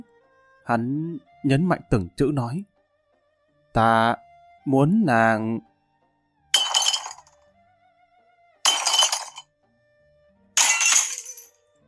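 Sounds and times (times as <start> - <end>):
speech: 0.7 - 2.7, 3.7 - 5.7
teapots shattering on the floor: 6.6 - 7.3, 8.7 - 9.4, 10.6 - 11.5.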